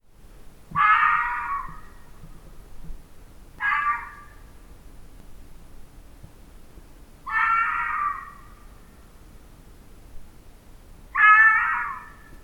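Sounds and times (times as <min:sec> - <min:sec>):
fox uttering harsh strained wailing cries: 0:00.8 - 0:01.9, 0:03.6 - 0:04.4, 0:07.3 - 0:08.5, 0:11.2 - 0:12.3.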